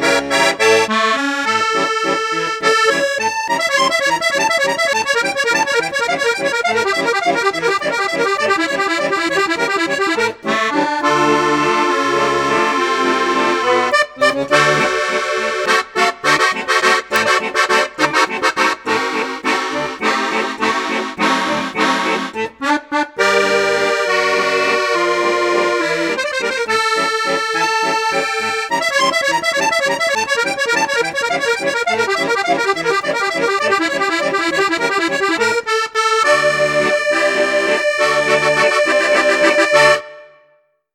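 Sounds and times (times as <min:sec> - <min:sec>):
accordion in flute registers: 0:00.0 - 0:40.9.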